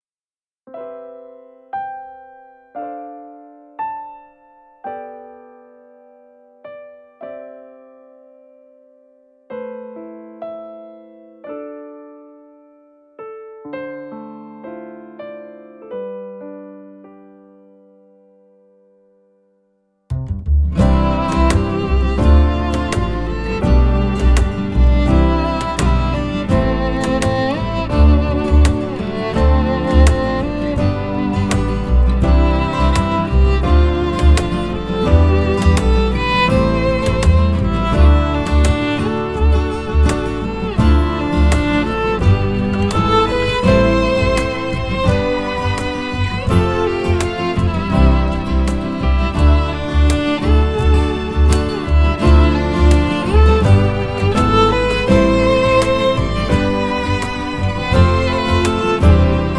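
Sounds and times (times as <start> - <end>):
violin: 20.7 - 59.5.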